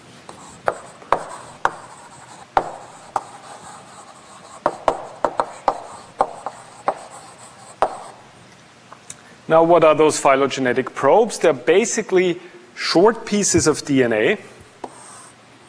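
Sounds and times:
writing on a board during a molecular evolution lecture: 0.3 - 8.2, 14.8 - 15.6
speech: 9.5 - 14.6.

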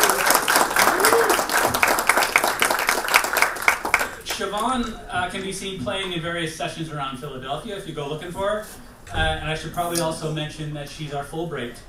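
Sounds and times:
round of applause: 0.0 - 4.9
speech: 4.6 - 11.8.

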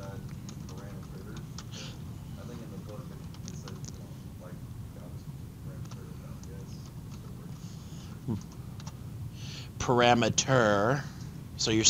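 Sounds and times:
computer keyboard keys clicking as code is typed into the ABAP editor: 0.0 - 1.7, 3.2 - 4.0, 8.3 - 9.0
low hum: 0.0 - 11.8
speech: 8.3 - 8.6, 9.9 - 11.8.

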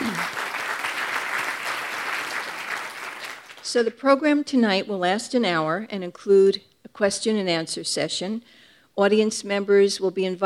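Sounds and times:
audience clapping at a New York Historical evening event: 0.0 - 3.7
speech: 3.7 - 10.4.

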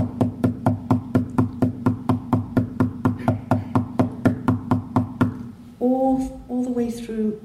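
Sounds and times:
knocking on a door: 0.0 - 5.4
speech: 6.7 - 7.4.

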